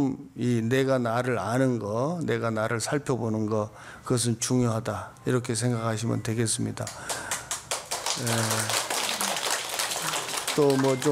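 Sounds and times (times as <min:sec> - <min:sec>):
speech: 0:00.0 - 0:07.3, 0:08.2 - 0:08.8, 0:10.6 - 0:11.1
audience clapping: 0:06.9 - 0:11.1.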